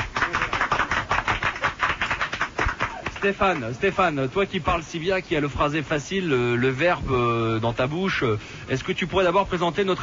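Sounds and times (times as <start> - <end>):
audience applause: 0.0 - 3.7
speech: 3.2 - 10.0.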